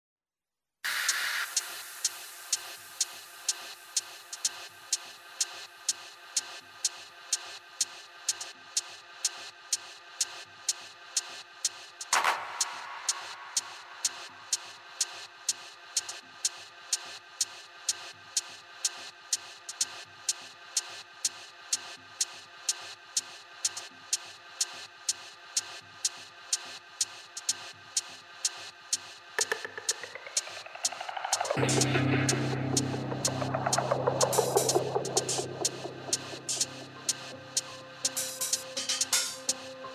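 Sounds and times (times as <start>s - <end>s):
techno live set at an open air event: 12.1s - 15.0s, 29.4s - 39.9s.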